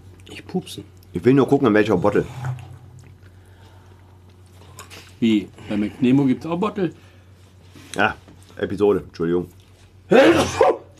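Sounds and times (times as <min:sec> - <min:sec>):
speech: 0:00.3 - 0:02.6, 0:05.2 - 0:07.0, 0:07.9 - 0:10.7
sneeze: 0:10.1 - 0:10.9.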